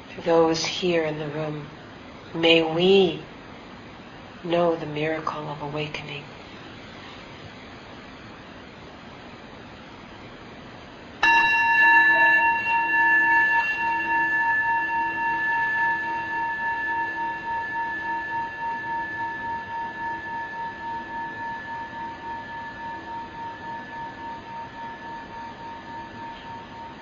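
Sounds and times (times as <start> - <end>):
speech: 0.2 - 3.3, 4.4 - 6.4
meditation bell ringing: 11.2 - 26.9.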